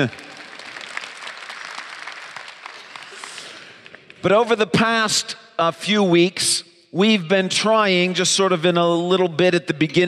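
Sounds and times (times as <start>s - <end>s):
speech: 0.0s - 0.3s, 4.2s - 10.0s
audience applauding: 0.0s - 4.2s.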